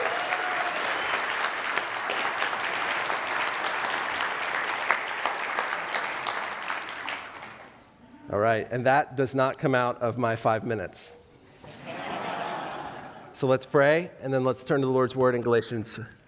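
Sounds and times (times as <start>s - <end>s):
crowd applauding: 0.0s - 7.9s
speech: 8.4s - 11.2s, 13.4s - 16.2s
laughter: 11.6s - 13.4s.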